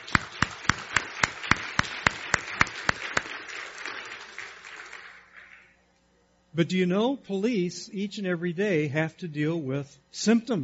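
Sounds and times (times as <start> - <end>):
applause: 0.0 - 5.8
speech: 6.6 - 10.6.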